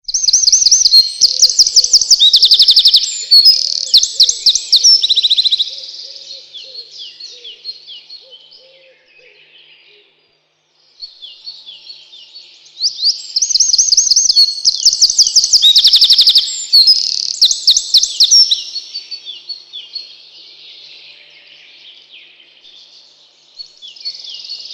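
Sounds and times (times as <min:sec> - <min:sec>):
Eurasian wren shrill trilling song: 0:00.0 - 0:09.3, 0:11.0 - 0:20.2.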